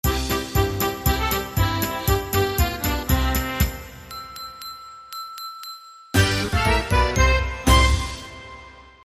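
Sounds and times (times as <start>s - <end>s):
Christmas polka music: 0.0s - 4.1s, 6.2s - 8.8s.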